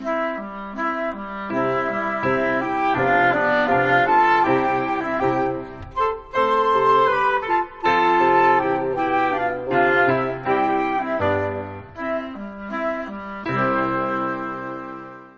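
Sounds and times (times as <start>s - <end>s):
woodwinds: 0.0s - 15.3s.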